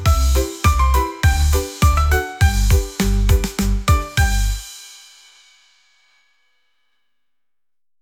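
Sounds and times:
happy children's music: 0.0s - 5.3s.

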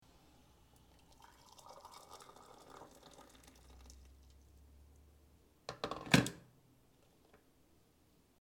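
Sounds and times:
water poured from an electric kettle: 0.7s - 4.4s.

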